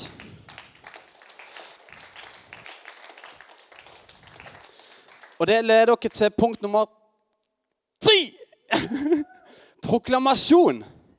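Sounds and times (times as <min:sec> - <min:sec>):
audience applause: 0:00.0 - 0:05.6
speech: 0:05.4 - 0:07.0, 0:09.9 - 0:11.0
laughter: 0:08.7 - 0:09.5.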